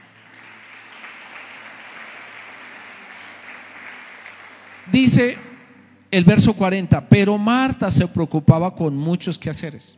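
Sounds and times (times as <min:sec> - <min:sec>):
church audience applauding: 0:00.0 - 0:05.7
speech: 0:04.9 - 0:05.4, 0:06.1 - 0:09.9.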